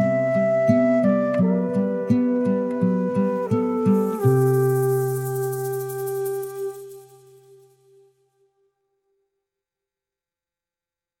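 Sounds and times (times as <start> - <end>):
peaceful meadow tune: 0.0 - 8.8.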